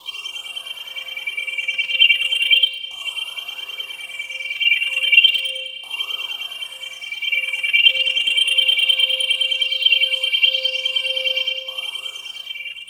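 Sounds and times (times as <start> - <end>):
soundscape: 0.6 - 12.8.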